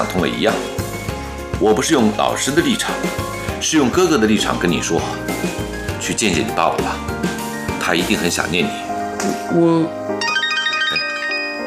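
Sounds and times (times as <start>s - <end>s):
speech: 0.0s - 0.9s, 1.6s - 7.2s, 7.9s - 10.0s
phone electronic ringtone: 10.2s - 11.6s.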